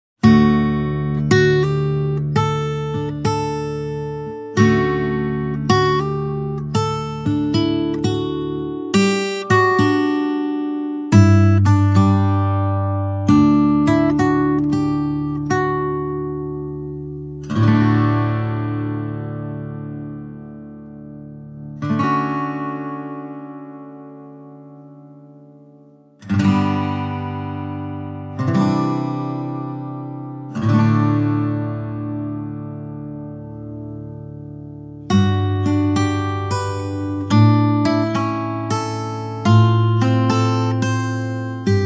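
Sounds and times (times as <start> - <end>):
main guitar playing alone: 0.2 - 41.8.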